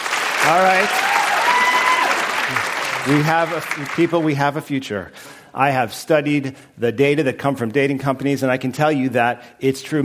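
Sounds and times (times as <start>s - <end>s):
audience clapping loudly: 0.0s - 4.4s
speech: 0.4s - 1.0s, 2.5s - 10.0s.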